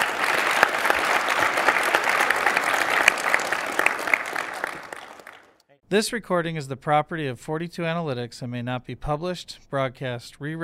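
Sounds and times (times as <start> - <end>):
crowd applause: 0.0 - 5.6
speech: 5.9 - 10.6.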